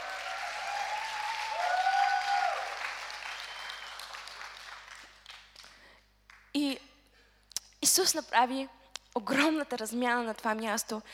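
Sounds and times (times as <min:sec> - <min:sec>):
large audience applauding: 0:00.0 - 0:05.8
speech: 0:08.0 - 0:11.1.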